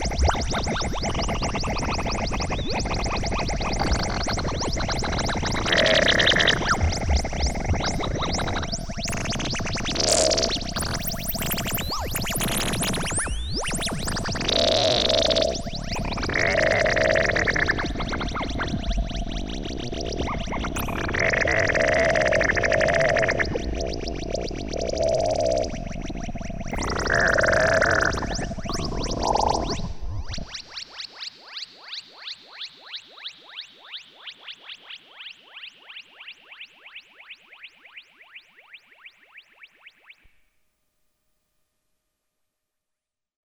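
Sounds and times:
jungle beasts synthesizer patch: 0.0s - 31.0s.

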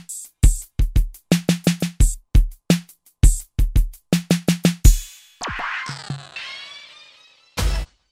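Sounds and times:
hip hop drum machine beat: 0.0s - 6.4s.

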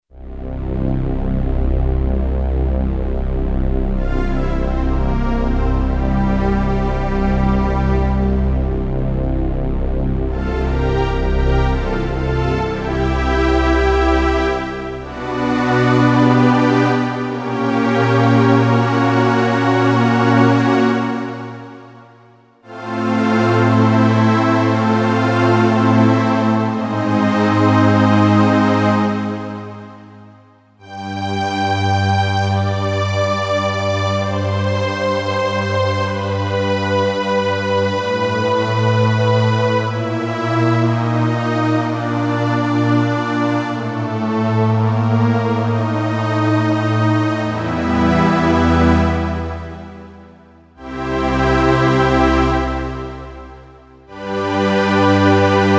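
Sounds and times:
VP330 and SELINA synthesizer: 0.1s - 55.7s.

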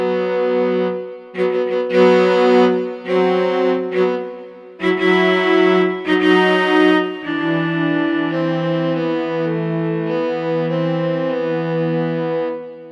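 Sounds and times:
cellos on Korg T3 synthesizer: 0.0s - 12.8s.

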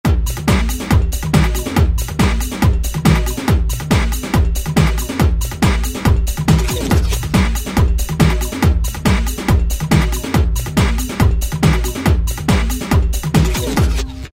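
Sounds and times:
minimal beat on a Korg ES-1: 0.1s - 14.2s.

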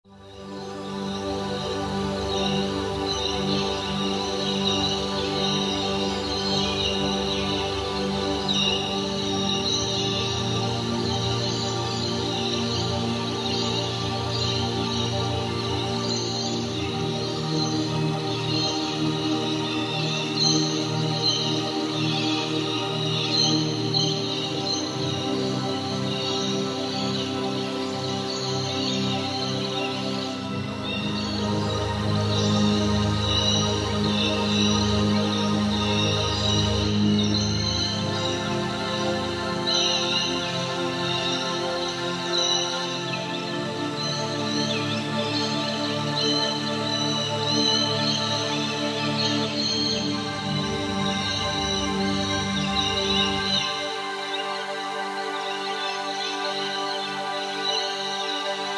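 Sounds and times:
Roland V-Synth synthesizer: 0.0s - 58.7s.

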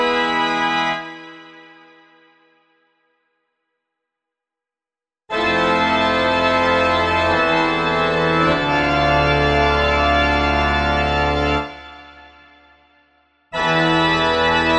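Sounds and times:
church organ playing tutti: 0.0s - 1.9s, 5.3s - 12.1s, 13.6s - 14.7s.

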